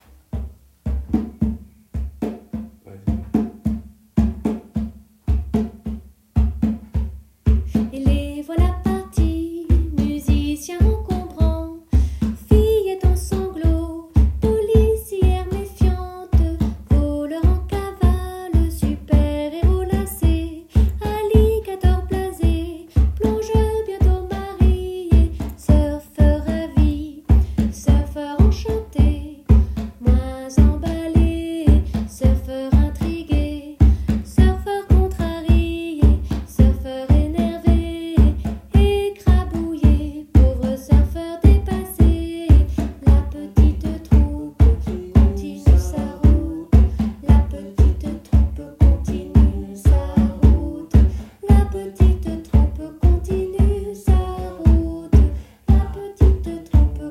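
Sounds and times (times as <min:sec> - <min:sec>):
percussion: 0:00.0 - 0:57.1
chanting: 0:43.3 - 0:46.7.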